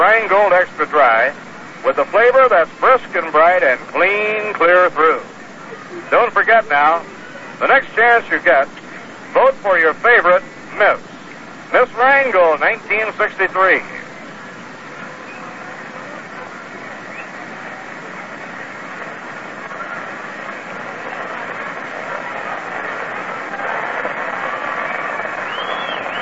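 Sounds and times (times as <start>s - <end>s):
baseball crowd murmur at the Polo Grounds during seventh-inning stretch: 0.0s - 26.2s
speech: 0.1s - 5.3s, 6.0s - 11.1s, 11.7s - 14.0s.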